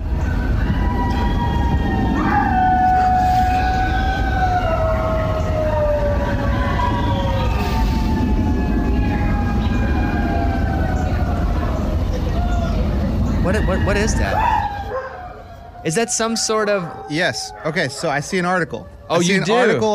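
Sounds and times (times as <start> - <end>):
low rumble: 0.0 - 15.8
neighbors howling outdoors: 0.0 - 19.9
speech: 13.6 - 14.5, 15.8 - 19.9.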